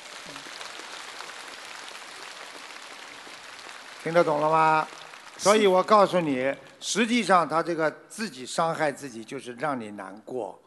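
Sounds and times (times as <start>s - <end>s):
applause: 0.0s - 7.3s
speech: 4.0s - 10.6s.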